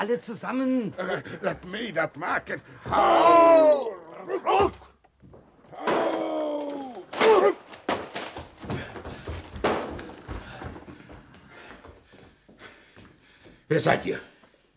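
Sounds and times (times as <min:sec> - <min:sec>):
speech: 0:00.0 - 0:04.9, 0:13.7 - 0:14.3
laughter: 0:00.9 - 0:02.9
door being broken open: 0:04.6 - 0:10.9.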